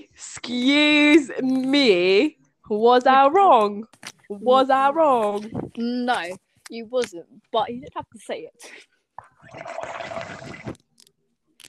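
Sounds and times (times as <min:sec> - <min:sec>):
speech: 0:00.2 - 0:10.8
person slurping a drink: 0:09.3 - 0:11.2.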